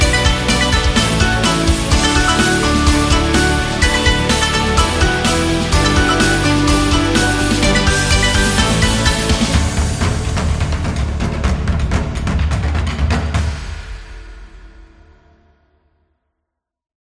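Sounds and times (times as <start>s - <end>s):
Chinese rock music: 0.0s - 12.5s.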